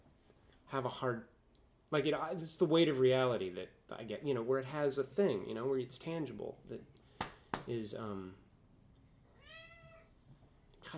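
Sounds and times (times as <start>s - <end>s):
speech: 0.7s - 7.0s, 7.7s - 8.4s
cat meowing: 9.3s - 10.2s.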